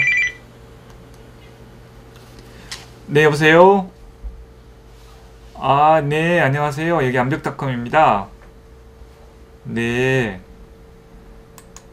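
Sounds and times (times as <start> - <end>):
phone ringing: 0.0 - 0.4
speech: 3.1 - 3.9, 5.6 - 8.4, 9.6 - 10.5.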